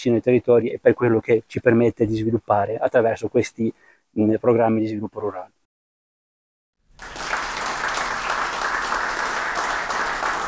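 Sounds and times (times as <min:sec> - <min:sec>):
speech: 0:00.0 - 0:05.6
audience applause: 0:06.9 - 0:10.4.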